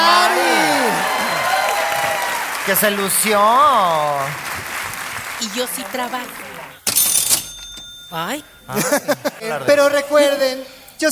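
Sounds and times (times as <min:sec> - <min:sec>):
audience applause: 0:00.0 - 0:06.8
speech: 0:02.7 - 0:04.7, 0:05.4 - 0:06.5, 0:08.1 - 0:11.1
laughter: 0:08.7 - 0:10.1.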